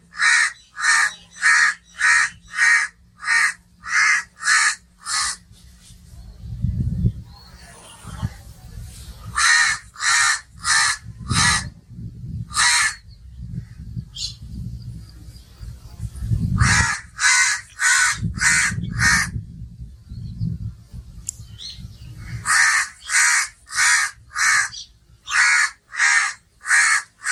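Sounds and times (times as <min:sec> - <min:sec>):
calm bird ambience: 0:00.0 - 0:27.3
crow cawing: 0:00.1 - 0:05.4, 0:09.4 - 0:11.7, 0:12.5 - 0:13.0, 0:16.6 - 0:19.4, 0:22.4 - 0:27.3.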